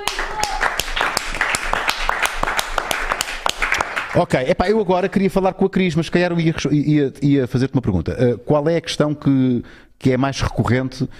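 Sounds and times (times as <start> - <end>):
audience applause: 0.0 - 4.2
speech: 4.2 - 11.1.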